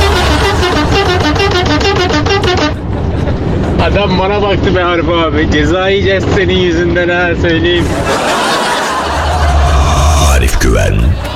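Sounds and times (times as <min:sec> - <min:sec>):
laughter: 0:00.0 - 0:00.9, 0:02.7 - 0:04.0, 0:07.8 - 0:11.3
car horn honking: 0:00.0 - 0:02.9
low engine rumble: 0:00.0 - 0:11.3
speech: 0:04.0 - 0:08.5.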